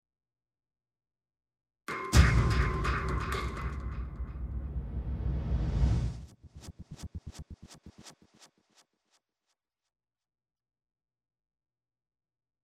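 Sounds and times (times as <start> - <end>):
suspense mood music: 2.1 - 8.4.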